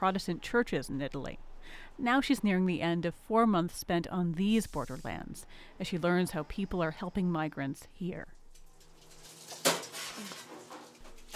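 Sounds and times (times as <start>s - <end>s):
speech: 0.0s - 8.4s
crockery clattering as women wash up dishes in a church-run dining hall: 9.0s - 11.3s
plates and cutlery clinking and rattling: 9.0s - 11.3s.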